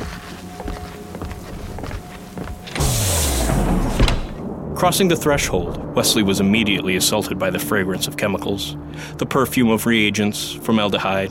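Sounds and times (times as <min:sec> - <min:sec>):
footsteps: 0:00.0 - 0:03.0
automatic doors sliding open with motorized whoosh: 0:02.6 - 0:04.4
speech: 0:04.8 - 0:11.2.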